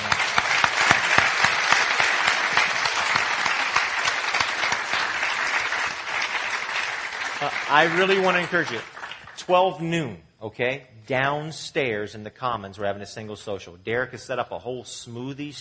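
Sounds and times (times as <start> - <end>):
crowd applauding: 0.0 - 9.7
speech: 7.7 - 8.9, 9.5 - 15.5.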